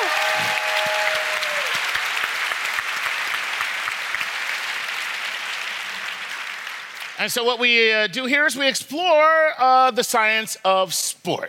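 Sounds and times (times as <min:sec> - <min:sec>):
audience applause: 0:00.0 - 0:07.3
speech: 0:07.2 - 0:11.4.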